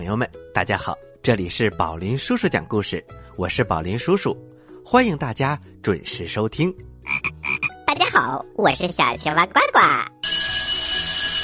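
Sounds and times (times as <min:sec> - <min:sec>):
speech: 0:00.0 - 0:07.3, 0:08.1 - 0:10.2
school class bell ringing: 0:10.2 - 0:11.4.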